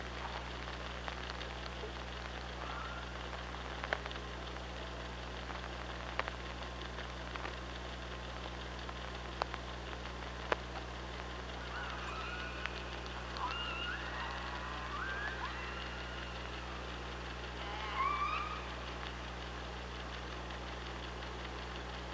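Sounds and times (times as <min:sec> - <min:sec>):
persistent low hum: 0:00.0 - 0:22.1
sharp clicks: 0:00.0 - 0:22.1
killer whale pulsed calls: 0:11.6 - 0:19.1.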